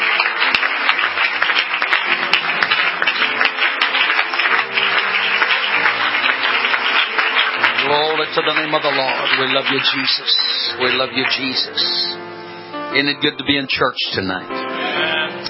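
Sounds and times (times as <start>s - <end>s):
church congregation clapping for a preacher: 0.0s - 12.2s
speech: 8.2s - 12.2s, 12.9s - 14.6s.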